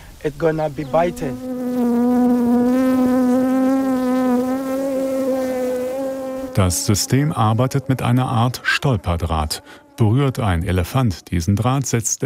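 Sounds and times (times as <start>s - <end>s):
speech: 0.2s - 1.6s, 6.6s - 12.2s
bees buzzing around a beehive: 0.5s - 11.4s.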